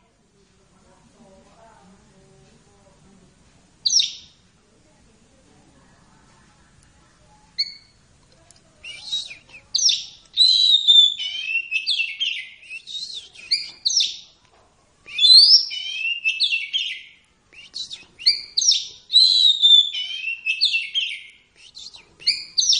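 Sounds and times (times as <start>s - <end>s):
long-tailed shrike song: 8.8s - 14.2s, 15.1s - 22.7s.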